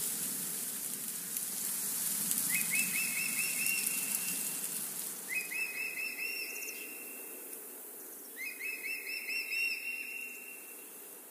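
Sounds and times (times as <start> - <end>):
wind rustling through leaves in a forest: 0.0 - 11.3
bird calling with a rapid run of whistled notes: 2.5 - 7.4, 8.4 - 10.8.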